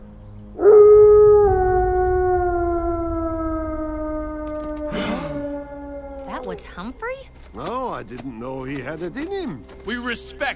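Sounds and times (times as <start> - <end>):
wolf howling: 0.6 - 6.8
speech: 6.7 - 10.5.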